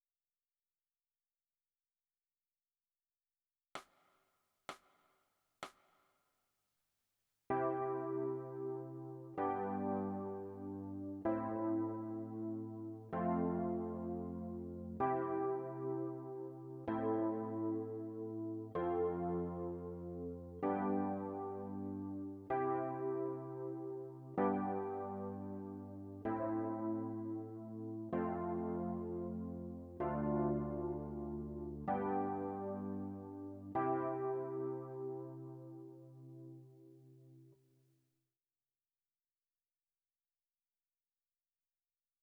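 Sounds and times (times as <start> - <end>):
electric piano: 7.5 - 37.2.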